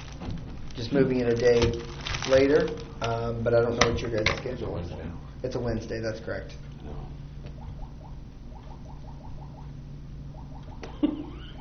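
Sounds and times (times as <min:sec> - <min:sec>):
speech: 0:00.8 - 0:07.1
clock sound resembling an arcade game: 0:07.5 - 0:11.1.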